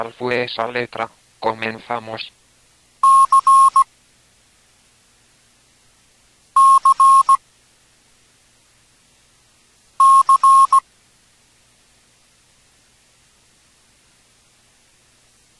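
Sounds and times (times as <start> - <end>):
speech: 0.0 - 2.4
Morse code tones for letter C: 3.0 - 3.8, 6.6 - 7.4, 10.0 - 10.8.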